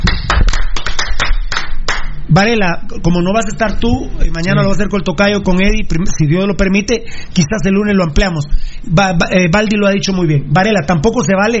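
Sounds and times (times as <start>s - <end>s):
hand clapping: 0.0s - 2.2s
low rumble: 0.0s - 11.5s
speech: 2.3s - 11.5s.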